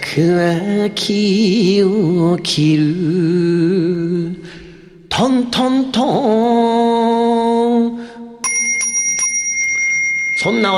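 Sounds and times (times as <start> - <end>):
speech: 0.2 - 4.6, 5.2 - 7.0, 10.4 - 10.7
Buddhist rin bowl bell ringing: 8.4 - 10.7.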